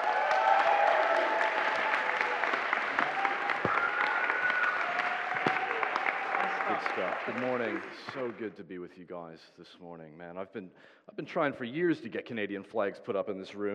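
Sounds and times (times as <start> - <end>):
audience applauding to welcome a speaker: 0.0 - 8.5
speech: 6.8 - 13.7.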